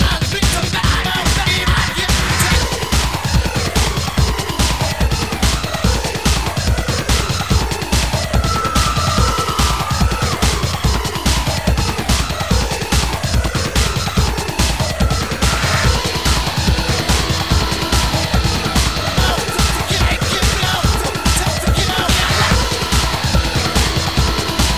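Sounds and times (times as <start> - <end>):
percussion: 0.0 - 24.7.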